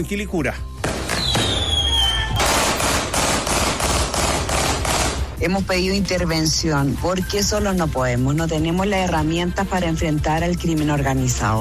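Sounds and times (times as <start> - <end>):
speech: 0.0 - 0.7, 5.4 - 11.5
whistling streak like a rising firework: 1.1 - 2.6
rapid gunshots fired into the air: 2.3 - 5.5.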